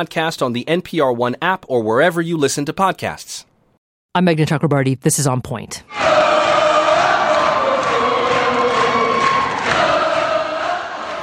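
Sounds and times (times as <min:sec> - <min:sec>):
speech: 0:00.0 - 0:03.5, 0:04.2 - 0:06.0
crowd of teachers cheering inside the West Virginia State Capitol: 0:05.9 - 0:11.2.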